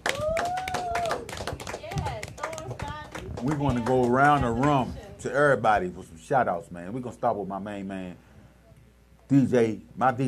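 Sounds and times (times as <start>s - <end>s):
clapping: 0.0s - 4.8s
speech: 3.4s - 8.2s, 9.3s - 10.2s.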